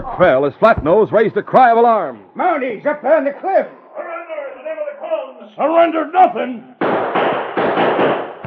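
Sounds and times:
speech: 0.2s - 3.8s, 5.5s - 6.7s
gunshot from the rim of the canyon: 6.8s - 8.4s.

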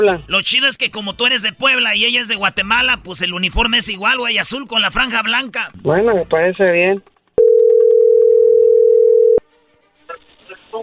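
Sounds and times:
speech: 0.0s - 7.2s
telephone dial tone before a phone call: 7.4s - 9.4s.

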